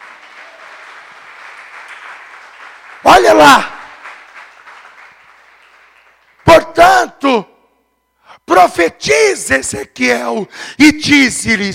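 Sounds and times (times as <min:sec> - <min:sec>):
audience applauding: 0:00.0 - 0:06.6
speech: 0:03.2 - 0:03.7, 0:08.6 - 0:11.7.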